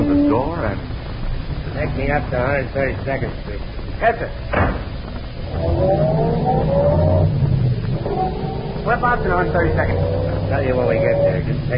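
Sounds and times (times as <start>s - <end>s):
taxi engine revving and pulling away: 0.0s - 11.7s
speech: 1.9s - 4.8s, 9.0s - 11.7s.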